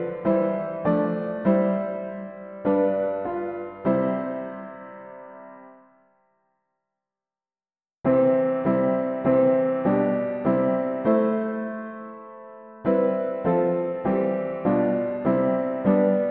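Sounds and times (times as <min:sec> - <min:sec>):
hymn on piano: 0:00.0 - 0:05.9, 0:08.1 - 0:16.2.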